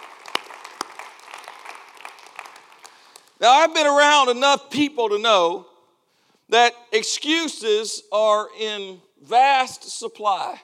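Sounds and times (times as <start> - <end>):
audience clapping hands: 0.0 - 3.4
speech: 3.4 - 5.7, 6.5 - 10.6.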